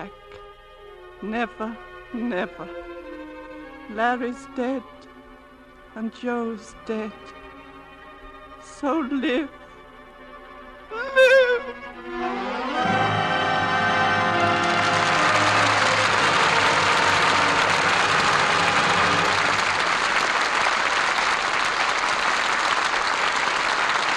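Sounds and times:
speech: 0.0 - 0.4, 1.2 - 3.1, 3.9 - 5.1, 6.0 - 7.4, 8.6 - 9.6, 10.9 - 12.9
lingering musical chord: 1.0 - 22.4
theater audience applause at curtain fall: 12.2 - 24.1.

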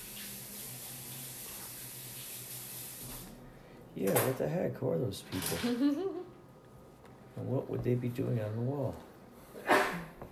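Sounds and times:
speech: 4.0 - 6.3, 7.4 - 9.1
person sneezing: 9.6 - 10.2.

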